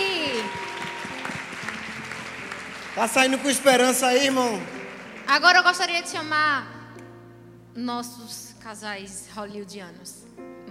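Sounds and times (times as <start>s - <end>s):
audience applause: 0.0s - 6.0s
speech: 3.0s - 6.8s, 7.8s - 10.6s.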